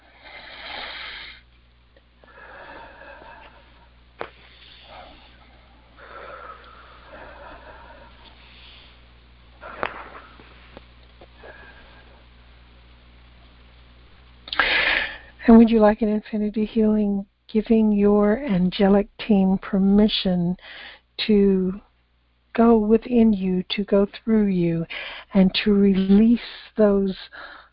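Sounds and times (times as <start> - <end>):
deep breaths taken during a guided meditation: 0.0 - 1.5, 2.2 - 12.3, 14.5 - 15.4, 20.6 - 21.1, 24.9 - 25.4, 26.4 - 27.7
speech: 15.5 - 21.9, 22.6 - 27.6.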